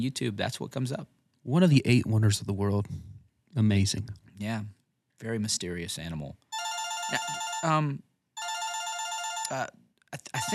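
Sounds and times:
speech: 0.0s - 6.5s, 7.1s - 8.1s, 9.5s - 10.5s
electronic telephone ring on a call-in phone line: 6.5s - 7.8s, 8.4s - 9.6s, 10.4s - 10.5s.

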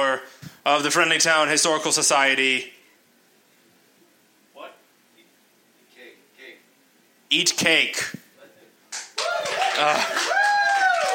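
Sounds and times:
speech: 0.0s - 2.8s, 7.3s - 8.2s, 9.8s - 10.4s
audience applause: 9.2s - 11.1s
whoop or whistle: 9.2s - 11.1s.

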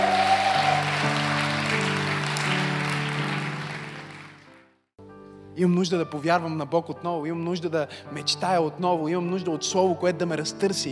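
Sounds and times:
women applauding: 0.0s - 4.7s
speech: 5.6s - 10.9s.

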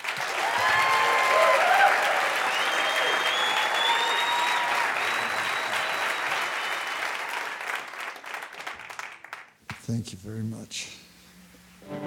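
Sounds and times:
audience applause welcoming a musician and his band: 0.0s - 9.6s
speech: 9.9s - 11.0s.

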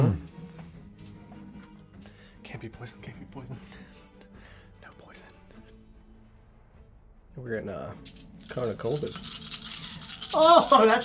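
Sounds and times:
speech: 2.6s - 4.0s, 7.4s - 9.4s, 10.3s - 11.0s
many dice being shaken and rolled: 8.0s - 11.0s.

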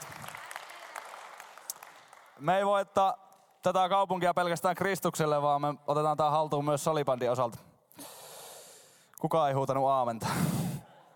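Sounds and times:
audience applause: 0.0s - 2.4s
speech: 2.4s - 7.7s, 9.2s - 10.5s.

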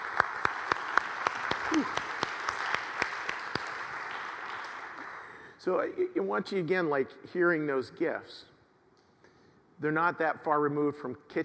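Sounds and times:
audience applause: 0.0s - 5.4s
person cheering: 1.6s - 2.2s
speech: 1.7s - 2.1s, 5.6s - 8.5s, 9.8s - 11.4s.

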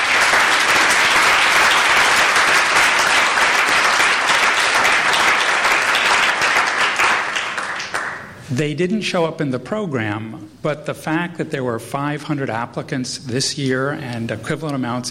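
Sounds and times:
round of applause: 0.0s - 8.4s
speech: 8.6s - 15.0s.

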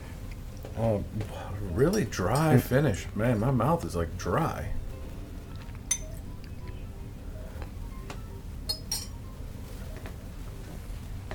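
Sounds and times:
speech: 0.8s - 4.8s
glass clinks from water added to a glass of whiskey: 5.9s - 6.2s, 8.7s - 9.2s.

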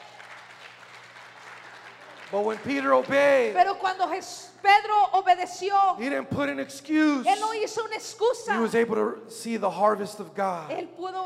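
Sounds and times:
audience applause: 0.0s - 3.6s
speech: 2.3s - 11.2s.

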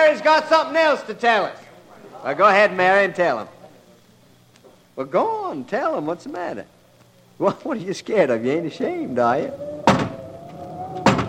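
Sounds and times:
speech: 0.1s - 1.6s, 2.2s - 3.6s, 5.0s - 6.7s, 7.4s - 10.0s
door creaking open: 9.5s - 11.2s.

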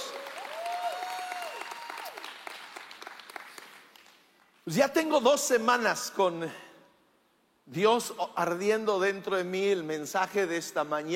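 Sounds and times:
audience applause: 0.0s - 4.3s
speech: 4.7s - 6.6s, 7.7s - 11.1s.

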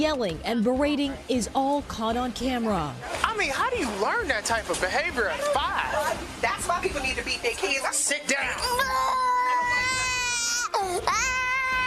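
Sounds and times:
speech: 0.0s - 9.5s, 10.8s - 11.4s
young child crying in police footage: 8.6s - 11.8s.

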